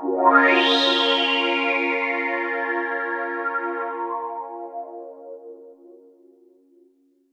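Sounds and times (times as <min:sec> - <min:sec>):
underground UK house and electro synth pads: 0:00.0 - 0:05.7.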